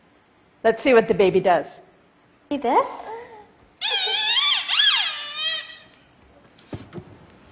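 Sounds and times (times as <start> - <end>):
speech: 0.6 - 1.9, 2.5 - 3.2
blue toy ball squeaking: 3.8 - 6.0.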